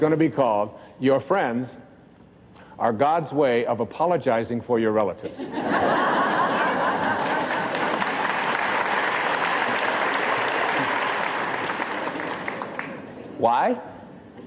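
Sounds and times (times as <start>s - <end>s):
speech: 0.0s - 1.9s, 2.8s - 6.2s, 13.4s - 13.9s
people chuckling: 5.3s - 8.2s
audience applauding: 6.6s - 13.1s.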